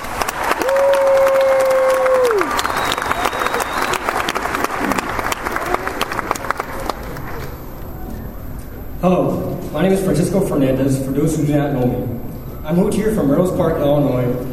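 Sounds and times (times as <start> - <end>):
large audience applauding for two student speakers: 0.0 - 7.6
speech: 9.0 - 14.5.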